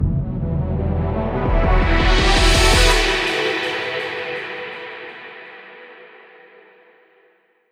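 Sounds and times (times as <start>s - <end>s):
victory theme music: 0.0s - 5.4s.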